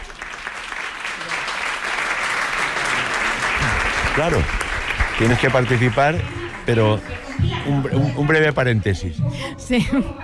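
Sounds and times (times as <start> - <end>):
applause: 0.0 - 8.4
speech: 4.2 - 4.6, 5.2 - 10.2.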